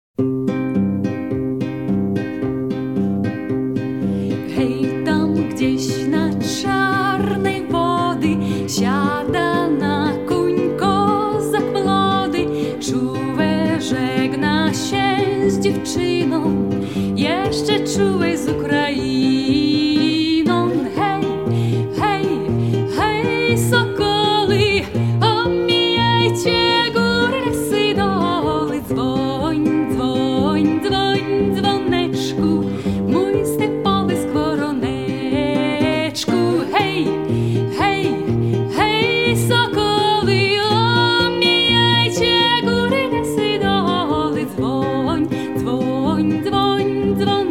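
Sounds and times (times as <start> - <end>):
Polish folk song: 1.1 - 47.4.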